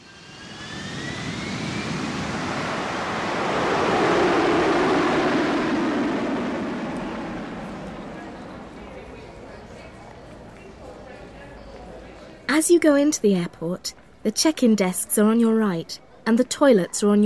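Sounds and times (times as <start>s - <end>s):
jet aircraft roar at an airport: 0.0s - 10.2s
speech: 12.6s - 17.2s.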